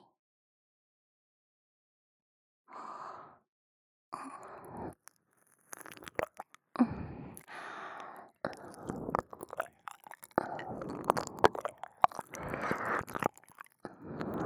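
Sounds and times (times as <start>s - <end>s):
ASMR ear licking: 4.6s - 14.4s.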